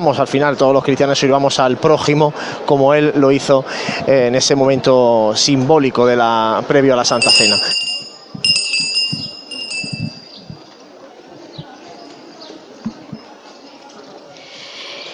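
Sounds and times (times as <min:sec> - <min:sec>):
speech: 0:00.0 - 0:07.9
procession herald's hand bell ringing: 0:07.2 - 0:10.6.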